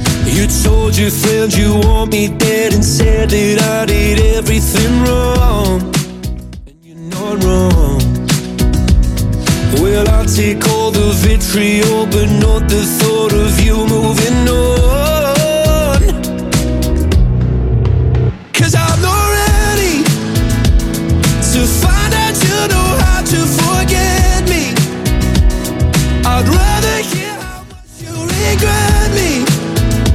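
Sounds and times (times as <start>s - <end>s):
Top 40 pop dance music: 0.0s - 17.4s, 18.4s - 30.1s.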